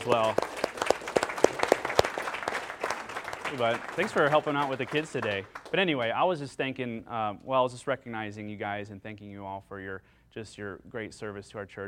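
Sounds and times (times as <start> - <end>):
speech: 0.0 - 0.6, 3.5 - 11.8
audience applause: 0.0 - 6.0.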